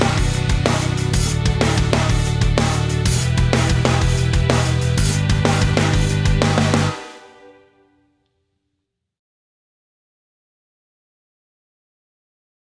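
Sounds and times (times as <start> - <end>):
karaoke singing: 0.0 - 7.0.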